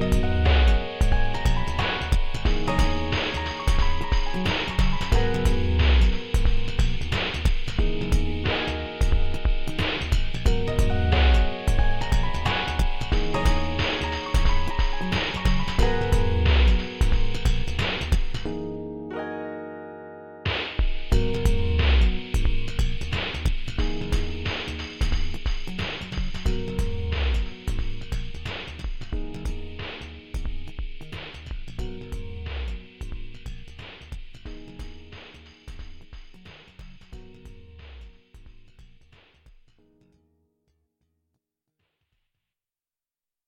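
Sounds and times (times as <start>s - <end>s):
acid synth loop: 0.0s - 18.5s, 21.0s - 36.2s.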